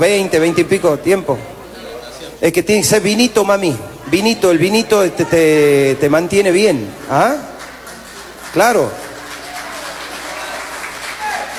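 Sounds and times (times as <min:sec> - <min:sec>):
speech: 0:00.0 - 0:01.6, 0:02.4 - 0:07.5, 0:08.5 - 0:09.0
applause: 0:07.0 - 0:11.5.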